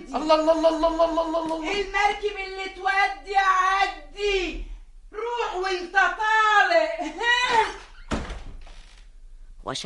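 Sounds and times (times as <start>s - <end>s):
speech: 0.1s - 4.7s, 5.5s - 7.8s, 9.7s - 9.8s
door creak: 7.7s - 9.2s
door shut with a dull solid thud: 7.8s - 9.1s.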